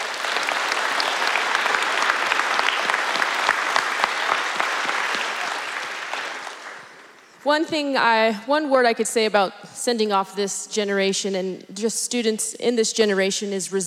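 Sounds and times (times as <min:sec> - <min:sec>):
round of applause: 0:00.0 - 0:07.4
speech: 0:07.4 - 0:13.8.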